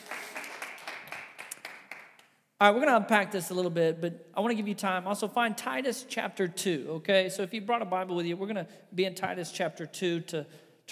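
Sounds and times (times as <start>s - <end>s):
group applause: 0.0s - 2.3s
speech: 2.6s - 10.8s.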